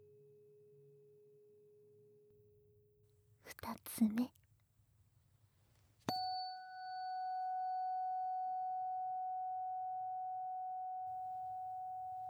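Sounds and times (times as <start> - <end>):
speech: 3.6 - 4.4
ringing tuning fork tone: 6.1 - 12.2.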